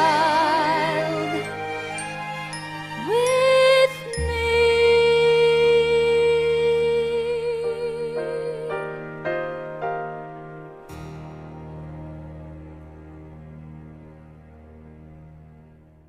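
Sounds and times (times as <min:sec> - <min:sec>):
vocals: 0:00.0 - 0:09.2.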